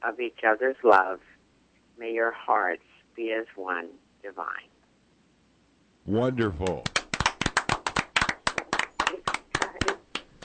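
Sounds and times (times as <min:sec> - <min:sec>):
speech: 0:00.0 - 0:01.4, 0:02.0 - 0:04.7, 0:06.1 - 0:07.0
crowd clapping in rhythm: 0:06.4 - 0:10.4.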